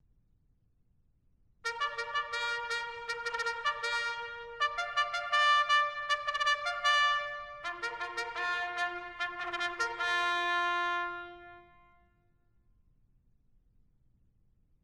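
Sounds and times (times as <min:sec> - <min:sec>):
bugle call: 0:01.7 - 0:12.0.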